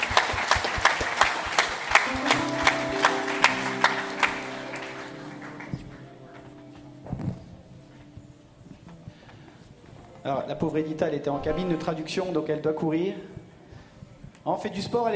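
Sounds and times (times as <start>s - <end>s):
audience applauding: 0.0s - 6.6s
speech: 10.3s - 13.4s, 14.4s - 15.1s.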